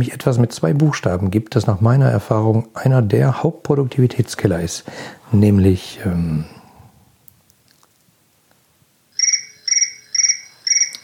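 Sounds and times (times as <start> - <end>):
speech: 0.0 - 6.6
telephone ringing: 9.1 - 11.0.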